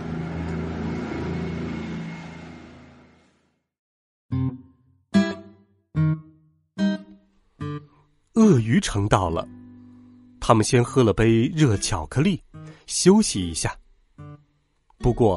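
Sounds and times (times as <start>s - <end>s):
car engine roaring as the car speeds away: 0.0s - 3.5s
speech: 8.5s - 9.6s, 10.5s - 13.8s, 15.0s - 15.3s.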